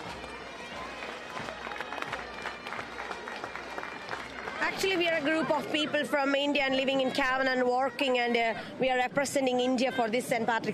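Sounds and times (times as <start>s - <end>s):
applause: 0.0s - 6.0s
speech: 4.7s - 10.7s.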